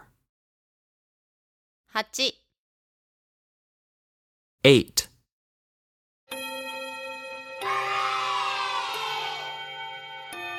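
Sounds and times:
speech: 0:01.9 - 0:02.4, 0:04.6 - 0:05.0
end of class bell ringing: 0:06.3 - 0:10.5.

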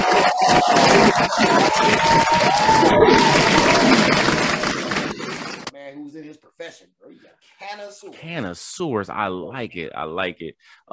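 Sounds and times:
audience clapping: 0:00.0 - 0:05.7
speech: 0:01.2 - 0:04.0, 0:06.6 - 0:10.9.

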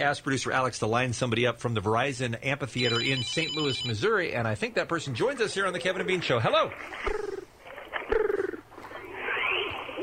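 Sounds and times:
speech: 0:00.0 - 0:07.4
voice imitating pigeon cooing: 0:08.1 - 0:08.6.

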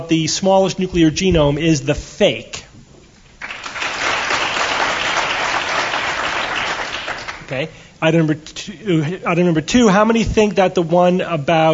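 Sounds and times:
speech: 0:00.0 - 0:02.7, 0:07.5 - 0:11.7
audience applause: 0:03.4 - 0:07.6.

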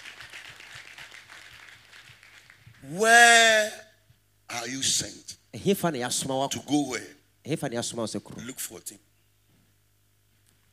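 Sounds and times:
audience clapping in rhythm: 0:00.0 - 0:03.1
speech: 0:02.8 - 0:03.8, 0:04.7 - 0:09.1.

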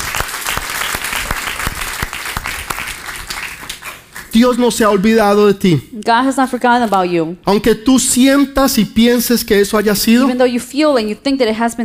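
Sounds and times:
audience applause: 0:00.0 - 0:04.6
speech: 0:04.4 - 0:11.8.

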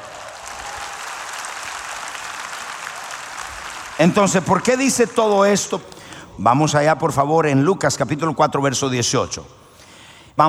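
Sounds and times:
sustained audience applause: 0:00.0 - 0:05.8
speech: 0:04.0 - 0:09.6.

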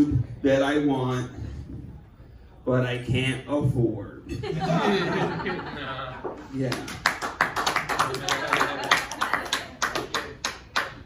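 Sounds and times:
speech: 0:00.0 - 0:01.5, 0:02.6 - 0:07.1, 0:08.1 - 0:08.9
laughter: 0:04.3 - 0:06.5, 0:07.8 - 0:10.4
audience clapping: 0:06.6 - 0:11.0.

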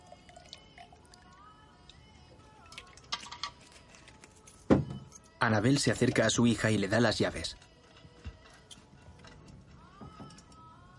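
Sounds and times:
liquid poured into a small flask: 0:00.0 - 0:02.0
speech: 0:05.4 - 0:07.6.

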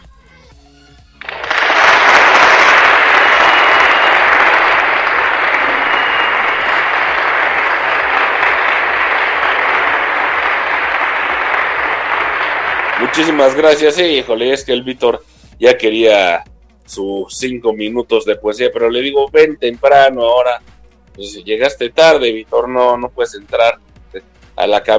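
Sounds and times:
crowd applause: 0:01.2 - 0:14.3
speech: 0:13.2 - 0:24.9.

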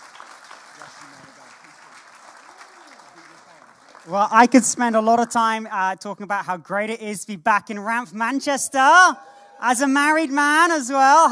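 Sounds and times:
church congregation applause welcoming a guest preacher: 0:00.0 - 0:05.5, 0:08.9 - 0:11.3
speech: 0:04.0 - 0:11.3.

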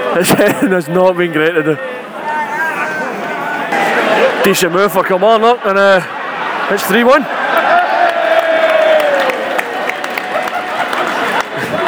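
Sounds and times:
football crowd sarcastically cheering at Kilmarnock v Celtic match: 0:00.0 - 0:11.8
laughter: 0:00.0 - 0:11.8
speech: 0:00.2 - 0:02.0, 0:04.4 - 0:07.4
football crowd clapping: 0:06.1 - 0:11.8.

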